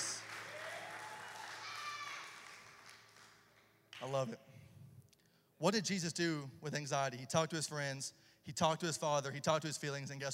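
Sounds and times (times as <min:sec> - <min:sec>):
audience clapping: 0:00.0 - 0:04.2
speech: 0:04.0 - 0:04.6, 0:05.6 - 0:10.3.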